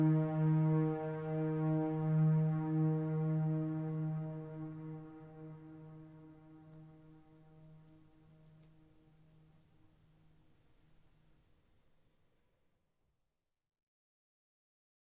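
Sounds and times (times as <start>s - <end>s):
ambient music: 0.0s - 6.6s.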